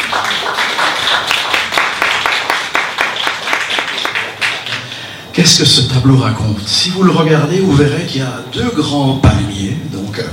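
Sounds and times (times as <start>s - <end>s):
audience applause: 0.0s - 5.3s
speech: 5.4s - 10.3s.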